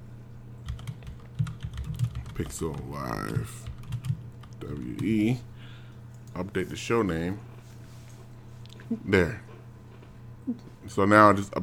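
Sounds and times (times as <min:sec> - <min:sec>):
low hum: 0:00.0 - 0:11.6
typing on a computer keyboard: 0:00.6 - 0:05.3
speech: 0:02.4 - 0:03.7, 0:04.6 - 0:05.5, 0:06.4 - 0:07.5, 0:08.9 - 0:09.5, 0:10.5 - 0:11.6.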